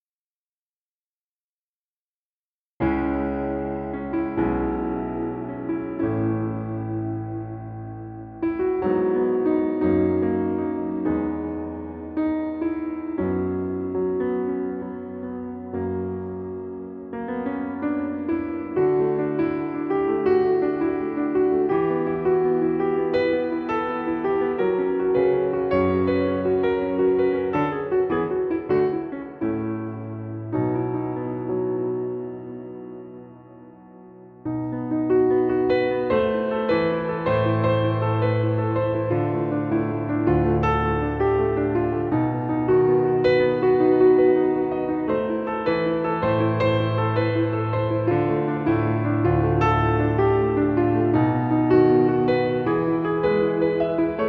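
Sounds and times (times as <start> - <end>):
solo piano: 2.8 - 54.2.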